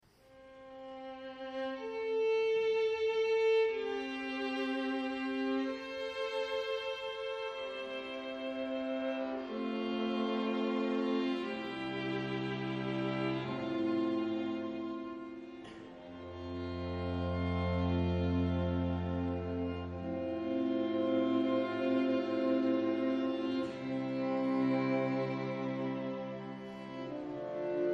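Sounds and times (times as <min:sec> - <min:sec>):
string quartet in A minor: 0:00.4 - 0:27.9.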